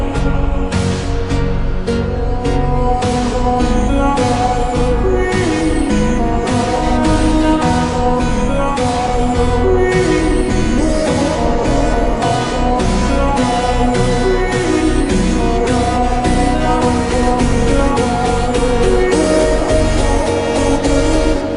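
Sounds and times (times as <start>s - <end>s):
slowed reverb music with boosted bass: 0.0s - 21.5s.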